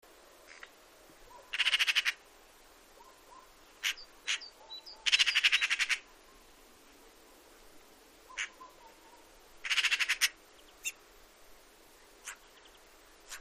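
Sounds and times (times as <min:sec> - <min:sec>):
Eurasian magpie harsh calls and rattling chatter: 0:01.3 - 0:02.2, 0:03.3 - 0:06.1, 0:08.3 - 0:08.9, 0:09.6 - 0:11.0, 0:12.2 - 0:13.3.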